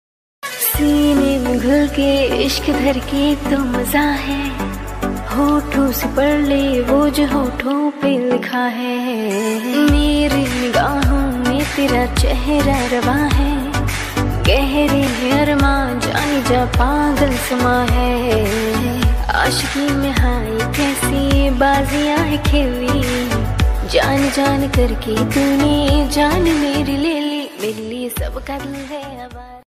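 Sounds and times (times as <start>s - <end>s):
romantic Hindi ringtone music: 0.4s - 29.4s.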